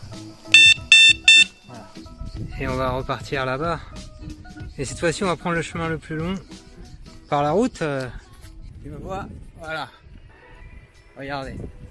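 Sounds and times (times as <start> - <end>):
vehicle horn honking: 0.6 - 1.6
speech: 2.4 - 6.6, 7.3 - 8.2, 8.8 - 10.0, 11.2 - 11.8.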